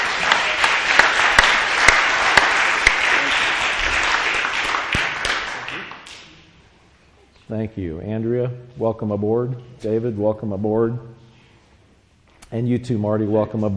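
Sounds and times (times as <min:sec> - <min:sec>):
congregation of St. Lucas United Church of Christ applauding new members: 0:00.0 - 0:06.4
speech: 0:07.5 - 0:11.2, 0:12.5 - 0:13.7.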